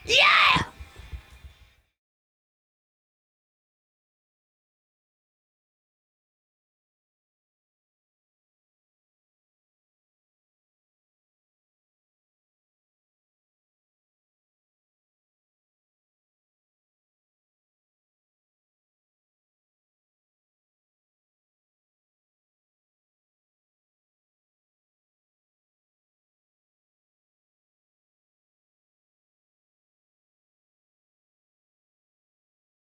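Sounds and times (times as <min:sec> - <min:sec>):
lead vocal: 0:00.0 - 0:01.2.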